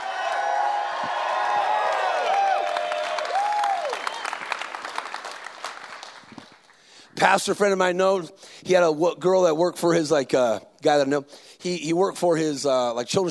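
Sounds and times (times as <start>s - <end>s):
audience clapping: 0.0s - 7.2s
speech: 7.2s - 13.2s.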